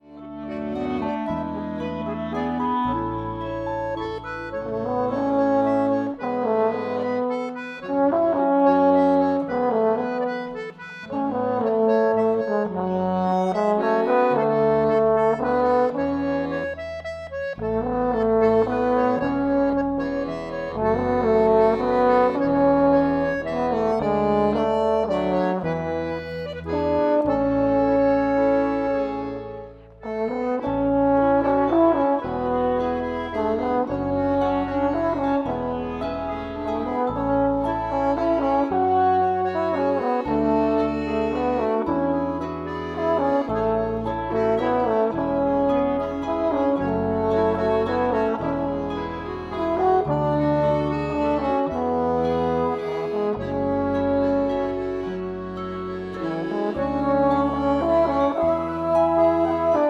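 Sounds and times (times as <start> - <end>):
mazurka: 0.0 - 59.8.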